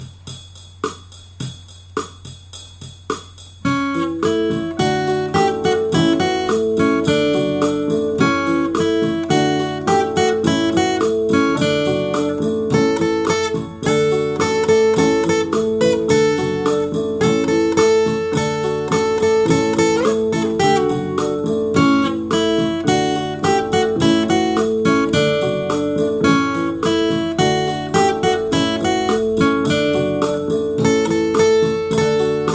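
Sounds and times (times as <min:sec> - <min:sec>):
instrumental bhajan music: 0:03.7 - 0:32.5.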